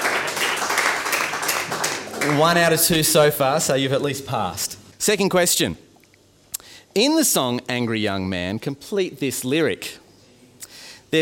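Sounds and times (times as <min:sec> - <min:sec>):
small group clapping: 0:00.0 - 0:03.2
speech: 0:02.3 - 0:05.9, 0:06.9 - 0:10.0.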